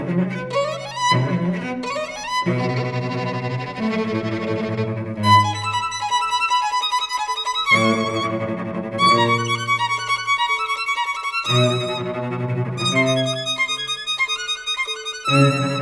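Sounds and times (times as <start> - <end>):
cello: 0.0 - 15.8
violin playing allegro: 0.0 - 15.8.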